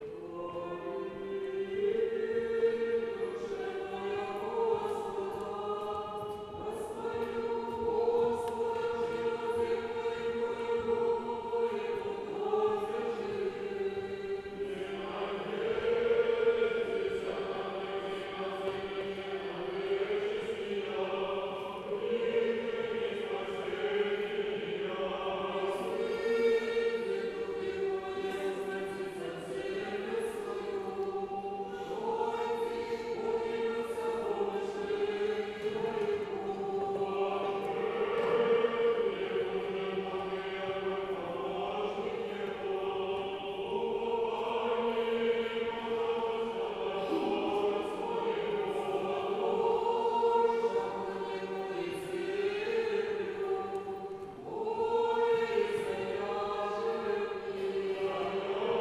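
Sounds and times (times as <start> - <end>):
choir chanting in the first tone: 0.0 - 58.8.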